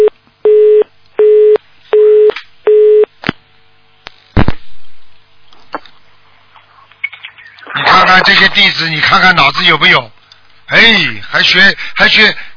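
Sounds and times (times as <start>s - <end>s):
telephone busy signal after dropped call: 0.0s - 3.1s
speech: 8.2s - 12.5s.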